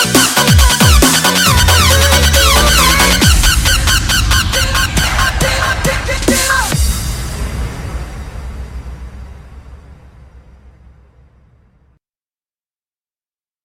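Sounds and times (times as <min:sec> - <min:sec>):
remix music: 0:00.0 - 0:08.0.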